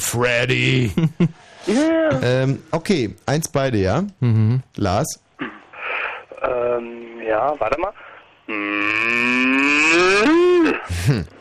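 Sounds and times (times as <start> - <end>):
speech: 0.1 - 5.6, 6.4 - 11.3
person imitating a cow mooing: 8.5 - 10.8.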